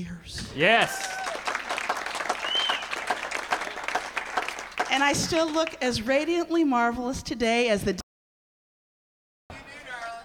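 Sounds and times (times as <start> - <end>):
speech: 0.0 - 1.2, 4.9 - 8.0
audience applause: 0.5 - 5.8.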